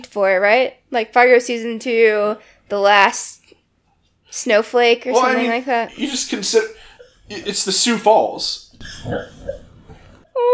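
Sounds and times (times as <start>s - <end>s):
speech: 0.0s - 3.5s, 4.3s - 9.7s
puppy snoring in sleep: 8.8s - 10.3s.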